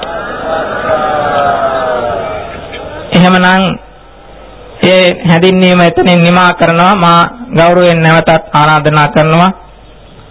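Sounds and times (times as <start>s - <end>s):
crowd chanting Sadhu, the Buddhist acclamation: 0.0s - 3.1s
speech: 3.2s - 3.9s, 4.8s - 9.6s.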